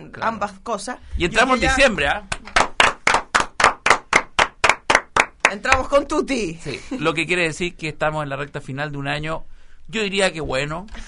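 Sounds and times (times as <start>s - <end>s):
speech: 0.0s - 2.6s, 5.5s - 11.0s
rhythmic moderate audience applause: 2.1s - 6.0s.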